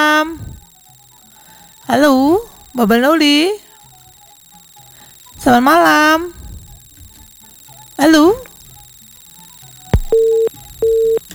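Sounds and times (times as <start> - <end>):
speech: 1.9 - 3.6, 5.4 - 6.4, 8.0 - 8.4
telephone call beeps: 7.4 - 11.3
telephone line click: 9.9 - 11.3.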